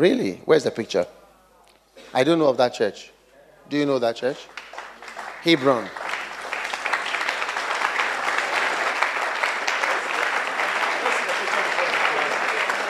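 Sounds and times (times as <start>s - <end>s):
speech: 0.0s - 1.2s, 2.1s - 3.1s, 3.7s - 4.6s, 5.4s - 6.0s
audience clapping: 4.2s - 12.8s.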